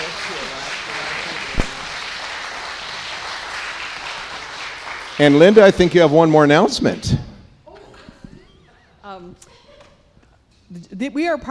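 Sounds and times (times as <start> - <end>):
audience applause: 0.0 - 6.6
speech: 5.2 - 7.3, 9.2 - 9.6, 10.7 - 11.4.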